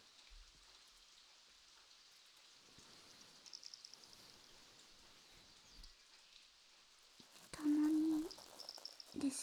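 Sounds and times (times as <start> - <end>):
ear cleaning in the left ear: 7.2 - 9.2.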